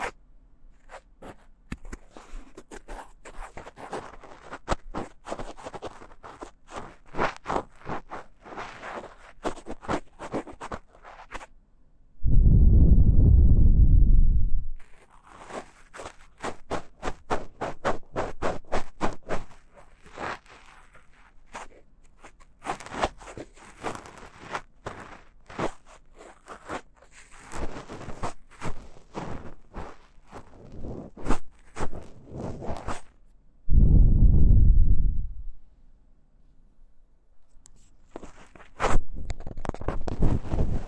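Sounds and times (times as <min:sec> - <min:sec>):
ASMR deep ear cleaning crackles recorded with KU100: 0:00.8 - 0:11.5, 0:14.8 - 0:33.2, 0:37.7 - 0:40.8
loud low rumble: 0:12.2 - 0:14.8, 0:33.7 - 0:35.5.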